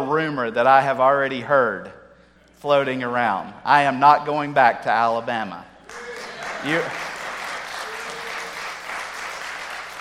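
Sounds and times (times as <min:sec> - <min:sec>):
speech: 0:00.1 - 0:02.0, 0:02.6 - 0:07.1
audience applause: 0:05.9 - 0:09.9.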